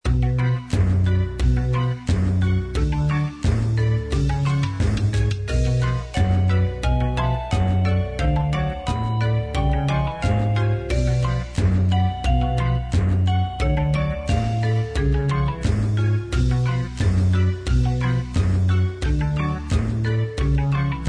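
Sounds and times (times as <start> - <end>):
monster music: 0.0 - 21.0.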